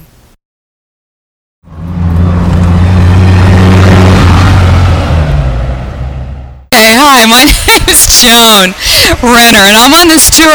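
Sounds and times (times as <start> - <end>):
large vehicle engine starting and accelerating: 1.6 - 7.8
speech: 6.8 - 10.5.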